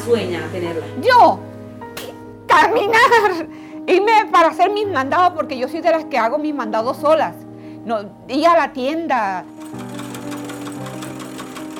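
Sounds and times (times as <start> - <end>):
speech: 0.0 - 1.5, 2.5 - 9.8
old Alfa sewing machine sewing, inherited, used for home sewing in Barranquilla: 9.5 - 11.7.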